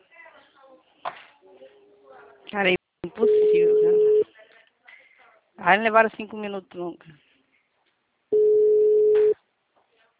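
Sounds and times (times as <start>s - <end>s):
speech: 2.5s - 3.7s, 5.6s - 7.2s
telephone busy signal on an unanswered call: 3.3s - 4.2s, 8.4s - 9.4s.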